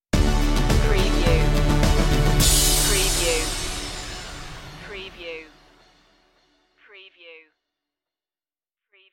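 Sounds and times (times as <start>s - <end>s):
musical stinger: 0.2s - 6.1s.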